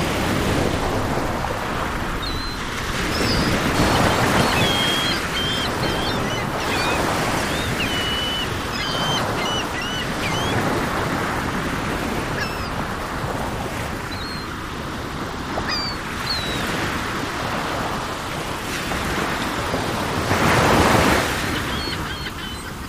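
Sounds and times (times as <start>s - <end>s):
ocean waves: 0.0s - 22.8s
seagulls calling: 2.2s - 13.3s, 14.0s - 14.6s, 15.4s - 17.0s, 20.4s - 22.8s.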